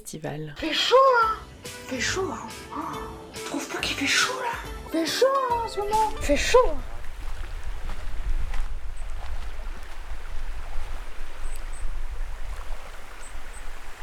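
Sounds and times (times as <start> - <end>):
speech: 0.0 - 6.9
river water flowing in a rushing burble: 3.6 - 14.0
small water splashes and trickles: 5.7 - 14.0.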